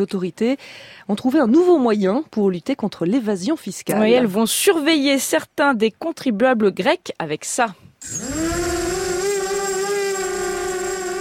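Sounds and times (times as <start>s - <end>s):
speech: 0.0s - 8.7s
drone buzzing: 8.0s - 11.1s.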